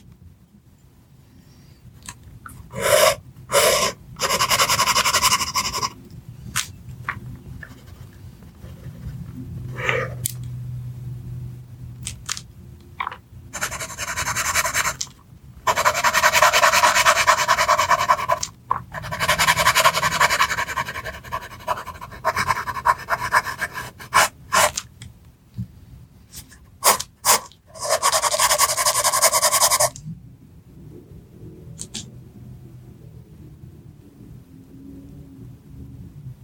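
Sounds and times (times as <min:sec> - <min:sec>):
soft pencil tracing: 0:02.8 - 0:06.0, 0:13.6 - 0:15.1, 0:15.7 - 0:24.8, 0:26.8 - 0:30.0.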